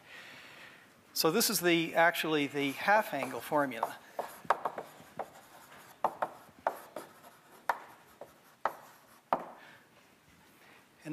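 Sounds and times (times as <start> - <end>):
speech: 1.2 - 4.0
writing on a board during a math lecture: 2.7 - 9.6.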